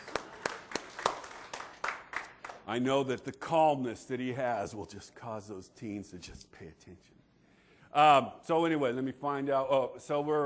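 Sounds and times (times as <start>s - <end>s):
small sparse round of applause: 0.0s - 2.7s
speech: 2.7s - 7.2s, 7.9s - 10.4s.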